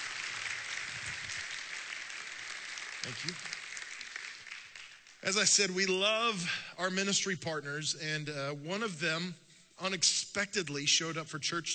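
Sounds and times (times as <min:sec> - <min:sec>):
audience applause: 0:00.0 - 0:05.2
speech: 0:03.0 - 0:03.6, 0:05.2 - 0:11.7.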